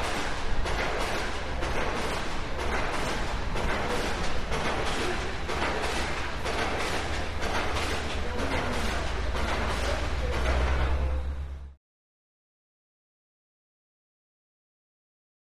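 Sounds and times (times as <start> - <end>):
pile driver: 0.0 - 11.8.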